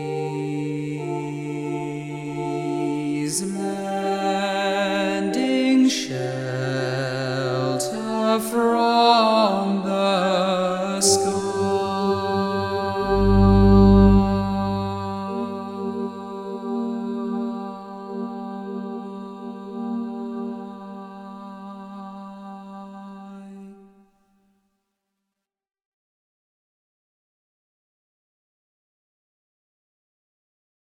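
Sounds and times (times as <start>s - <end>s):
tenor singing: 0.0s - 23.9s.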